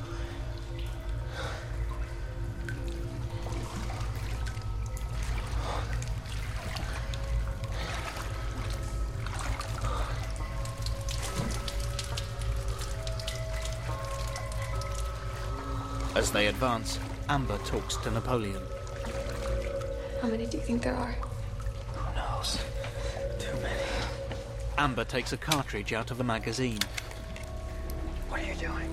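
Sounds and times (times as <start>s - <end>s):
low rumbling hum: 0.0s - 28.9s
water drips: 0.0s - 28.9s
footsteps wading through shallow water: 1.8s - 20.2s
speech: 16.2s - 18.8s, 20.2s - 21.3s, 24.8s - 27.0s.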